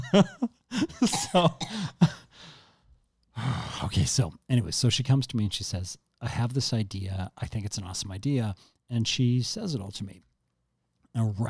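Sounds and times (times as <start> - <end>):
person coughing and gasping after choking on water: 0.0 - 2.4
speech: 0.1 - 2.1, 3.8 - 10.3, 11.1 - 11.4.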